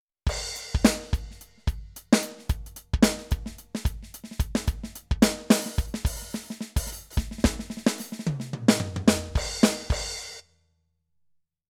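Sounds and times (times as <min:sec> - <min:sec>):
Millenium MPS450 electronic drum Latin rhythm: 0:00.3 - 0:10.3.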